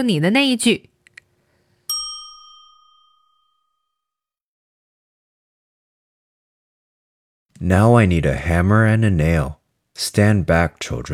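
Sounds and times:
speech: 0:00.0 - 0:00.9, 0:07.6 - 0:11.1
bright chime ding: 0:01.9 - 0:04.2.

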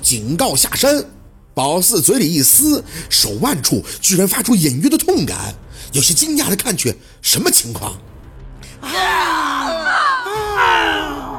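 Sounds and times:
speech: 0:00.1 - 0:08.2
woman's shrill wailing scream: 0:08.8 - 0:11.3.

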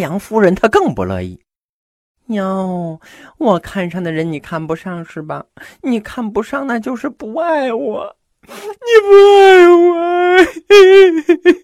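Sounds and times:
speech: 0:00.0 - 0:01.5, 0:02.3 - 0:11.6
storyteller imitating a woman crying: 0:07.7 - 0:11.6.

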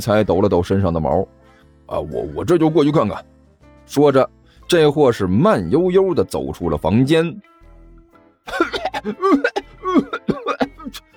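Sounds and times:
speech: 0:00.0 - 0:03.3, 0:03.9 - 0:07.5, 0:08.5 - 0:11.1
man coughing: 0:08.5 - 0:11.1.

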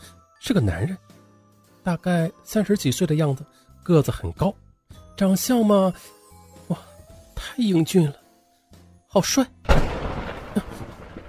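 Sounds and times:
speech: 0:00.5 - 0:01.1, 0:01.8 - 0:04.6, 0:05.2 - 0:06.9, 0:07.6 - 0:08.2, 0:09.2 - 0:09.9
thunder: 0:09.7 - 0:11.2.

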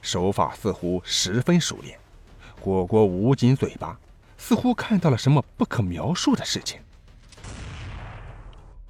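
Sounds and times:
speech: 0:00.0 - 0:02.0, 0:02.6 - 0:06.9
gunshot from a sniper rifle: 0:07.3 - 0:08.8.

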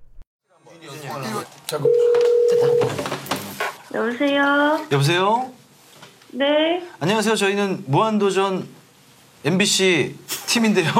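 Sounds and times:
speech: 0:01.2 - 0:03.2, 0:03.9 - 0:05.6, 0:06.3 - 0:08.8, 0:09.4 - 0:10.9
telephone ring tone at the start of a call to a TV show team: 0:01.8 - 0:03.0.

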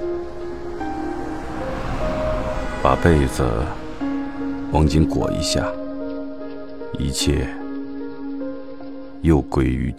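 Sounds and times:
vehicle passing in the distance: 0:00.0 - 0:06.9
speech: 0:02.8 - 0:03.8, 0:04.7 - 0:05.8, 0:07.0 - 0:07.6, 0:09.2 - 0:09.9.

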